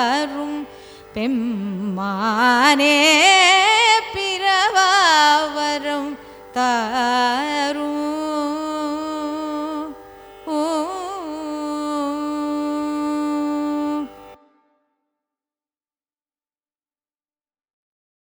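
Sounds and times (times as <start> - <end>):
Carnatic raga music: 0.0 - 14.6.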